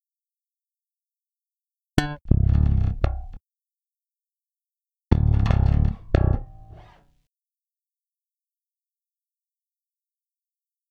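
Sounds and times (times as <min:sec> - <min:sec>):
electric bass: 0:02.0 - 0:03.4, 0:05.1 - 0:07.0.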